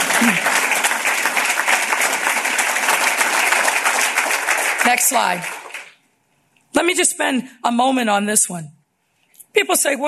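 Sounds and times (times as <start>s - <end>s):
audience clapping: 0.0s - 6.0s
speech: 0.2s - 0.5s, 4.9s - 5.6s, 6.8s - 8.8s, 9.5s - 10.0s.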